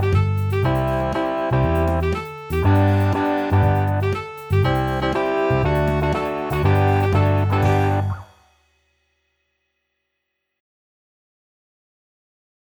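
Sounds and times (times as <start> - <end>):
instrumental music: 0.0 - 8.6.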